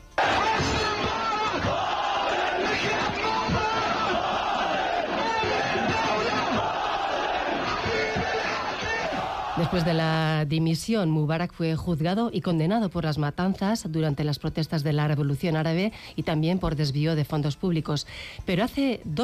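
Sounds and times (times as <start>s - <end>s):
huge jubilant crowd cheering, shouting and chanting in a square: 0.1s - 10.2s
speech: 9.6s - 19.2s.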